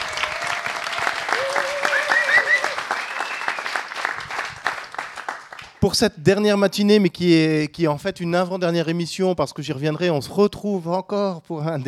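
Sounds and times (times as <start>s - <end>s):
live festival audience applauding in the Salle Trintignant: 0.0s - 5.8s
speech: 5.8s - 11.8s.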